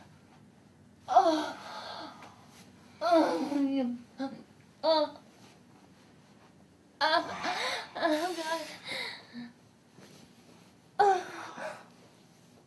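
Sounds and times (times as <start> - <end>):
person moaning: 1.1 - 2.1, 3.0 - 3.6, 7.0 - 9.5, 11.0 - 11.9.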